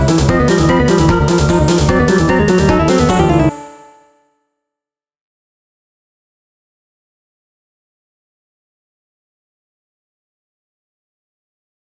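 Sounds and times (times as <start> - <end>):
boss music: 0.0 - 3.6.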